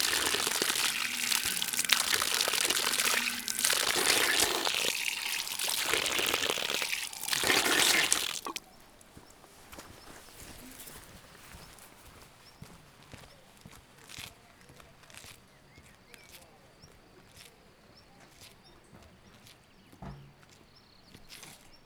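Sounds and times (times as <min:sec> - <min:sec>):
person washing face with water from an artesian well: 0:00.0 - 0:08.6
artesian well water running in Szögliget: 0:00.0 - 0:11.9.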